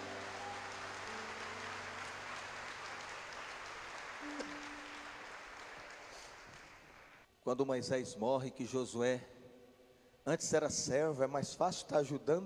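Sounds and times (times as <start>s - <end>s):
congregation applauding: 0.0s - 7.2s
speech: 7.4s - 9.4s, 10.3s - 12.4s.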